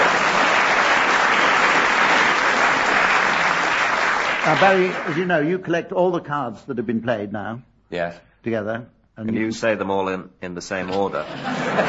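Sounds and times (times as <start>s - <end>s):
audience applause: 0.0s - 5.4s
speech: 4.5s - 11.8s
laughter: 10.9s - 11.8s.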